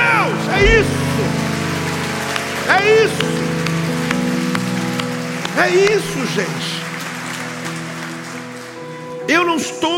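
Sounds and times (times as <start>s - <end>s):
audience applause: 0.0s - 9.9s
sustained musical tones: 0.6s - 2.3s
speech: 5.6s - 6.7s, 9.3s - 9.9s.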